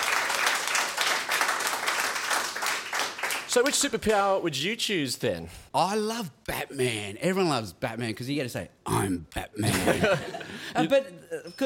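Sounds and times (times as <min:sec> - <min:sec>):
audience applause: 0:00.0 - 0:03.5
speech: 0:03.6 - 0:11.6
laughter: 0:09.6 - 0:11.0.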